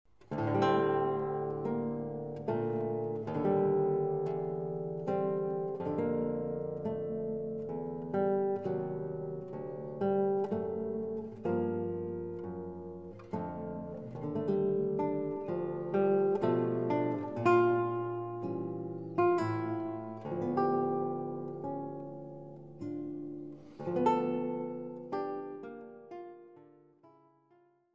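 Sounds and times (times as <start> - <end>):
guitar: 0.1 - 27.9.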